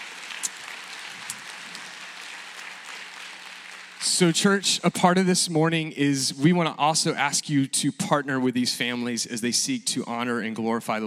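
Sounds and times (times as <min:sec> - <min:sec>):
crowd clapping: 0:00.0 - 0:05.3
speech: 0:04.2 - 0:11.0.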